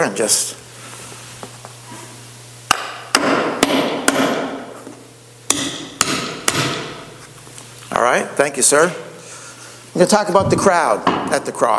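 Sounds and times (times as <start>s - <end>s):
speech: 0.0s - 0.7s, 8.1s - 9.1s, 10.0s - 11.7s
low steady hum: 0.0s - 11.7s
hammering a nail into wood: 2.7s - 4.6s, 5.5s - 7.0s.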